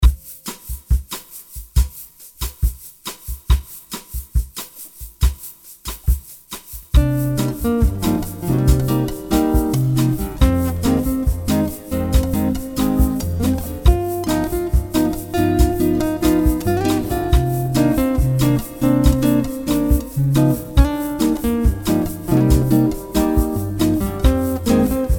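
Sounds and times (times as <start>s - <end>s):
light bossa nova music: 0.0s - 25.1s.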